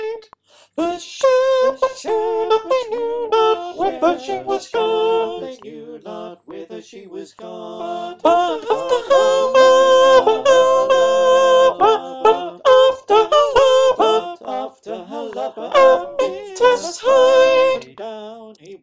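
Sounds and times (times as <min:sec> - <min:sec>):
soprano choir singing: 0:00.8 - 0:18.8.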